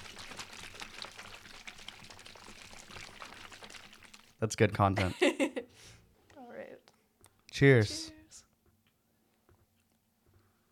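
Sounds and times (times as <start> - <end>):
shaking a bottle of lemonade: 0.0 - 4.4
speech: 4.4 - 6.0, 7.6 - 8.2
laughter: 5.0 - 5.7.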